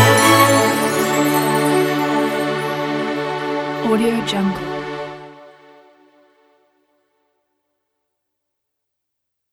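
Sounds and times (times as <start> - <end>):
Christmas music: 0.0 - 6.0.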